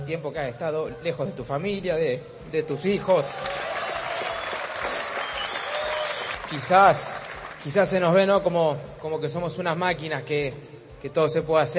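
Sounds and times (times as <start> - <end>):
speech: 0.1 - 3.6, 6.5 - 11.7
audience applause for the tennis world number one: 3.2 - 8.0.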